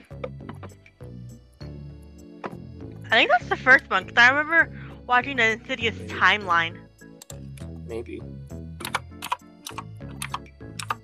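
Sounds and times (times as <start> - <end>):
speech: 3.1 - 6.8, 7.9 - 8.4
typing on a computer keyboard at an awkward angle: 8.8 - 11.0.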